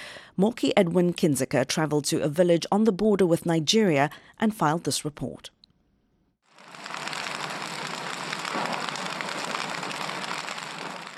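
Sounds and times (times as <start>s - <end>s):
speech: 0.4s - 5.6s
campfire burning in a remote village on Cameroon's border with Nigeria: 6.5s - 11.1s.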